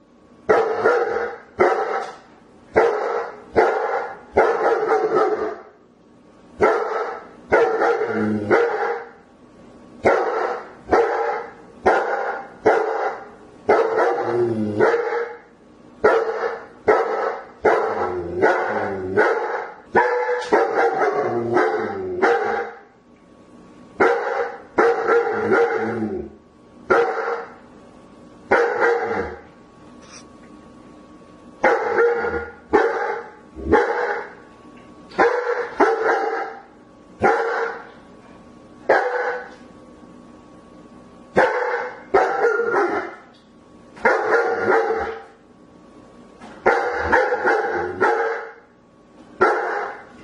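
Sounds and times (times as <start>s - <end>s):
German Shepherd dog barking: 0.5s - 2.2s, 2.8s - 5.7s, 6.6s - 9.2s, 10.0s - 15.4s, 16.0s - 22.8s, 24.0s - 26.0s, 26.9s - 27.6s, 28.5s - 29.4s, 31.6s - 34.4s, 35.1s - 37.9s, 38.9s - 39.6s, 41.4s - 43.2s, 44.0s - 45.3s, 46.6s - 48.6s, 49.4s - 50.1s.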